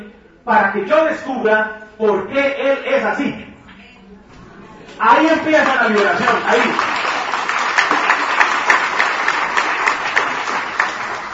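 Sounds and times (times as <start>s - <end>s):
speech: 0.4s - 3.5s, 5.0s - 7.0s
audience applause: 5.3s - 11.3s.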